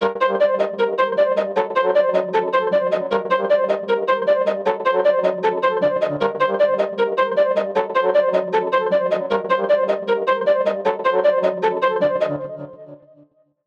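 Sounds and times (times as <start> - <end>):
155 bpm melody loop: 0.0 - 12.9.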